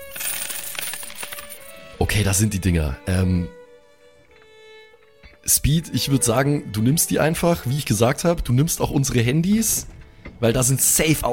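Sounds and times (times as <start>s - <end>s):
small hard chips clinking together in a hand: 0.0s - 1.8s
speech: 2.0s - 3.6s, 5.5s - 11.3s.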